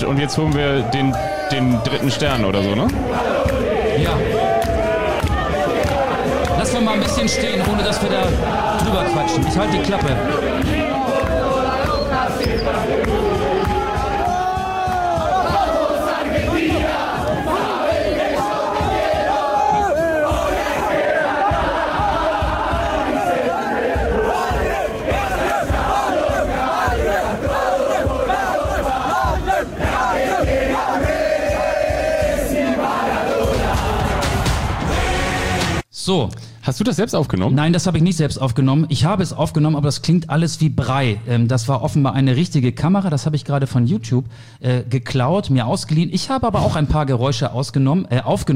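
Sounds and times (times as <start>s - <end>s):
speech: 0.0s - 3.3s, 4.0s - 4.4s, 6.8s - 10.8s, 36.1s - 48.5s
large crowd of football fans singing a chant: 0.0s - 35.8s.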